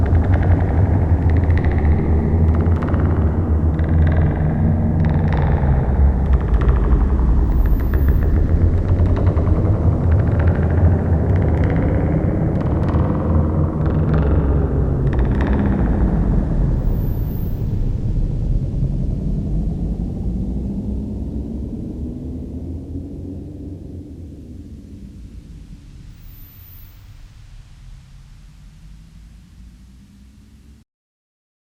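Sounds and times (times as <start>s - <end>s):
dark ambient music: 0.0s - 30.6s.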